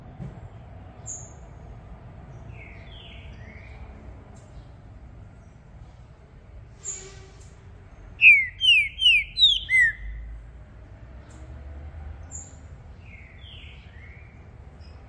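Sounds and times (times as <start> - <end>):
green-winged saltator singing descending whistles: 8.2 - 10.2.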